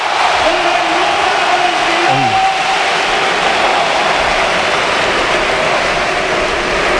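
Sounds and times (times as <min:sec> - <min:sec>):
stadium crowd ovation: 0:00.0 - 0:06.9.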